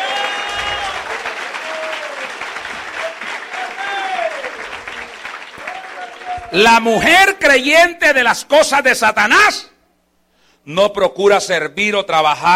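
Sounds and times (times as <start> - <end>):
voices cheering and calling out: 0.0 - 2.3, 3.0 - 5.0
audience applause: 0.0 - 6.8
speech: 6.5 - 9.7, 10.6 - 12.5.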